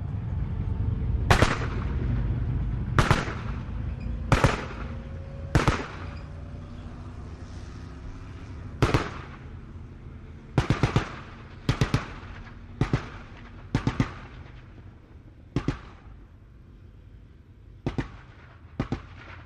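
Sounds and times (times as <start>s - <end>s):
armored personnel carrier driving outdoors: 0.0s - 19.4s
dual 50 caliber machine gun firing: 1.3s - 2.0s, 3.0s - 3.7s, 4.3s - 6.2s, 8.8s - 9.4s, 10.6s - 14.7s.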